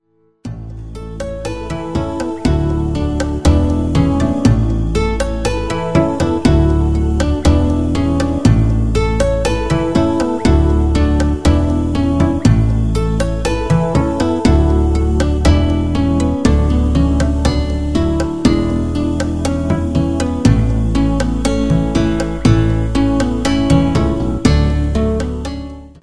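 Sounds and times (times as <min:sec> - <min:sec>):
royalty-free music: 0:00.0 - 0:26.0.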